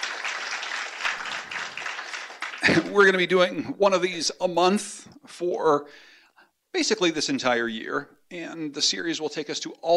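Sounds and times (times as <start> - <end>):
audience applause at an in-person gathering: 0.0 - 3.0
speech: 2.6 - 6.1, 6.7 - 9.9.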